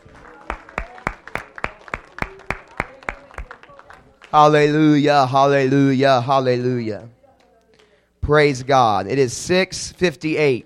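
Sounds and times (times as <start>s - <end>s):
audience clapping hands: 0.0s - 4.8s
speech: 4.3s - 7.2s, 8.3s - 10.6s.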